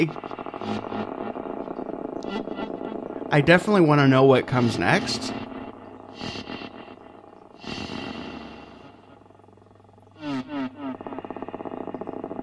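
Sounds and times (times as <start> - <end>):
speech: 0.0 - 1.1, 2.3 - 5.4, 6.2 - 6.5
person snoring: 0.0 - 9.5, 10.1 - 12.4
steady droning hum: 0.0 - 12.4.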